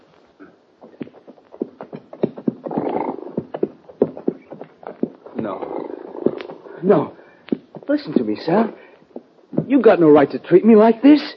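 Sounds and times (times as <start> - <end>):
roan horse hooves clip-clopping: 0.8 - 6.7, 7.5 - 10.3
horse snorting: 0.8 - 8.0
speech: 6.8 - 7.2, 7.9 - 8.8, 9.7 - 11.3.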